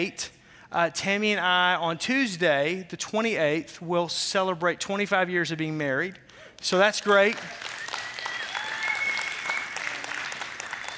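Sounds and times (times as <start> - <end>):
speech: 0.0 - 7.7
audience applause: 7.0 - 10.9.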